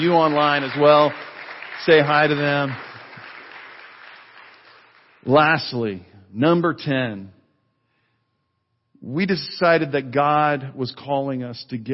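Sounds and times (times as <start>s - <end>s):
speech: 0.0s - 2.9s, 5.2s - 7.4s, 9.0s - 11.9s
audience applause: 0.0s - 5.2s.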